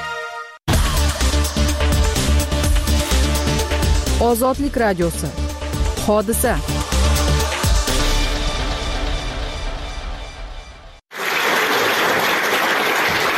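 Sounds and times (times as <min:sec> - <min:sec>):
music: 0:00.0 - 0:11.0
speech: 0:04.2 - 0:05.4, 0:06.1 - 0:06.9
thunderous applause from a full house at Ilhom Theatre: 0:11.1 - 0:13.3.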